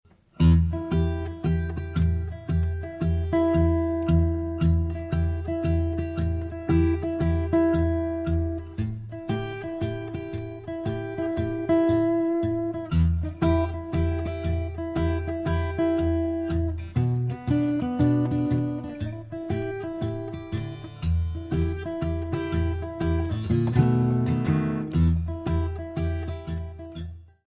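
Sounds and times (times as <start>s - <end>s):
blues in E minor: 0.3s - 27.2s.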